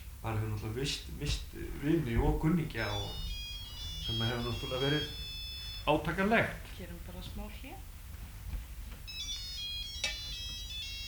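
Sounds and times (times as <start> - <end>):
speech: 0.2 - 3.3, 4.0 - 5.2, 5.8 - 7.9
telephone ringing with an electronic ringtone: 2.8 - 6.0, 9.1 - 11.0.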